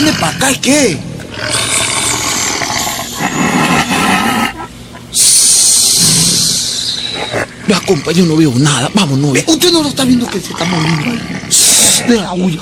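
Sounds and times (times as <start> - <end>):
speech: 0.1 - 1.8, 7.7 - 12.5
animal growling: 1.3 - 4.7, 5.8 - 9.4, 10.0 - 12.5.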